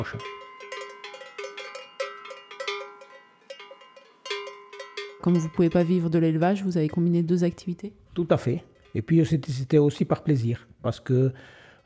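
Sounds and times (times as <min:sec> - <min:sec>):
speech: 0:00.0 - 0:00.4, 0:05.2 - 0:11.6
livestock bell ringing: 0:00.0 - 0:07.8, 0:08.4 - 0:09.7.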